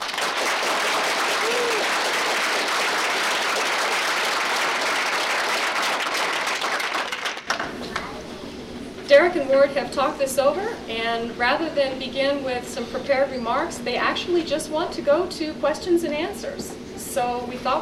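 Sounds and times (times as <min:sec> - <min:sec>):
audience applause welcoming two speakers: 0:00.0 - 0:07.7
speech: 0:09.4 - 0:17.7.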